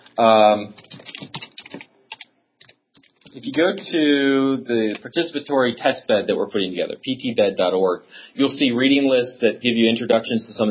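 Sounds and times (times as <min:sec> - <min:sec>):
speech: 0:00.2 - 0:00.9, 0:03.4 - 0:10.7
typing on a computer keyboard: 0:00.7 - 0:03.4.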